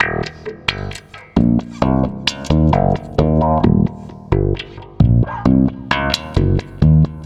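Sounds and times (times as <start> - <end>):
stick bass loop: 0.0 - 7.2.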